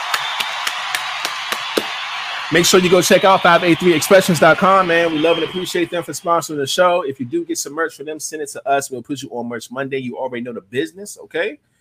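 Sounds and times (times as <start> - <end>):
person clapping: 0.0 - 5.8
speech: 2.5 - 11.7.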